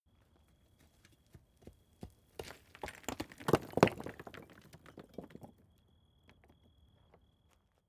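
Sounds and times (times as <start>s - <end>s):
medium stone falling and rolling: 1.6s - 7.2s.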